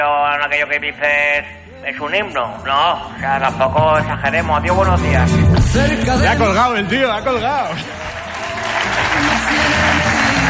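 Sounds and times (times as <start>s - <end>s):
speech: 0.0s - 8.2s
audience applause: 7.7s - 10.4s.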